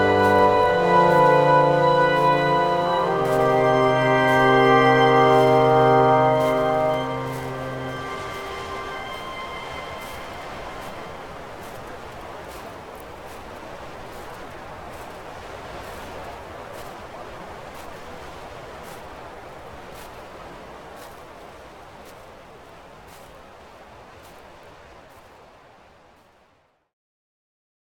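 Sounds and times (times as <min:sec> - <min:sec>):
music: 0:00.0 - 0:11.3
winter ambience: 0:00.0 - 0:26.8.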